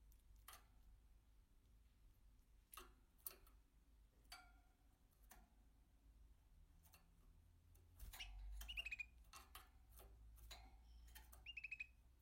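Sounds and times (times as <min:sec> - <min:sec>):
American canary song with sharp chips, clicks and rolling trills: 0:07.9 - 0:12.2.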